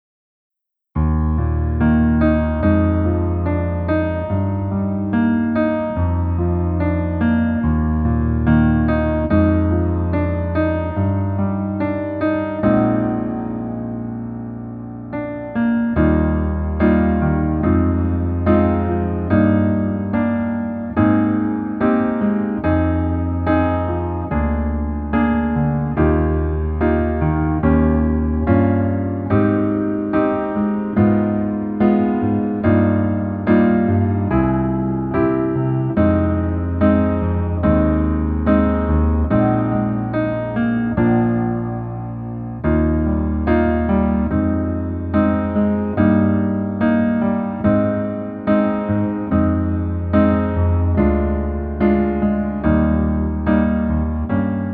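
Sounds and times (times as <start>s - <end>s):
piano music: 1.0s - 54.7s.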